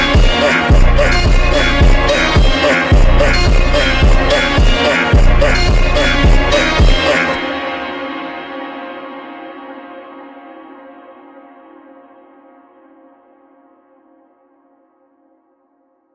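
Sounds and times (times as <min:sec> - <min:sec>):
slowed funk music with reverb: 0:00.0 - 0:09.2.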